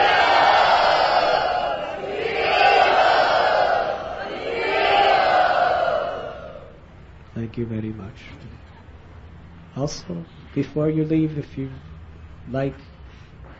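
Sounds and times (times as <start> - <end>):
crowd in Bombay loudly chanting: 0.0 - 6.8
speech: 7.6 - 8.7, 9.8 - 12.9.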